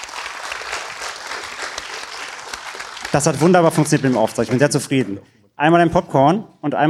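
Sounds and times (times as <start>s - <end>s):
audience applause: 0.0s - 4.9s
speech: 3.1s - 6.8s.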